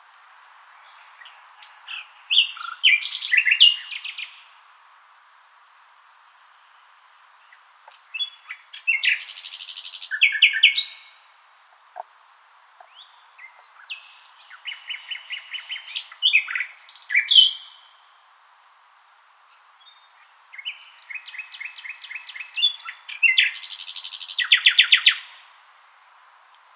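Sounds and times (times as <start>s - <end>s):
common nightingale song: 0.7s - 4.6s, 6.3s - 11.3s, 12.8s - 18.2s, 19.5s - 25.6s.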